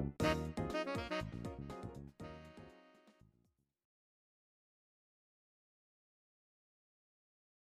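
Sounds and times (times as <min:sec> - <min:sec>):
saxophone: 0:00.2 - 0:03.2.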